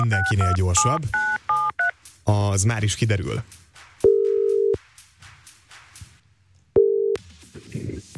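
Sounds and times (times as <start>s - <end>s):
speech: 0.0s - 1.4s, 2.3s - 3.6s
telephone ringback tone as a call is placed to a game winner from a radio studio: 4.1s - 4.8s, 6.8s - 7.2s.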